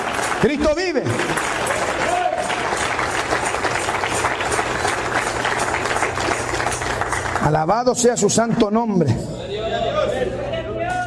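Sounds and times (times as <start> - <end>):
audience clapping in praise: 0.0 - 8.1
speech: 0.4 - 1.8, 7.5 - 10.3.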